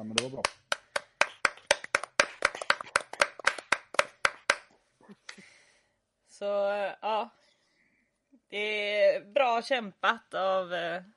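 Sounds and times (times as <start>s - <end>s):
speech: 0.0s - 0.6s, 6.4s - 7.4s, 8.5s - 11.1s
hands clapping from a few people: 0.0s - 5.4s.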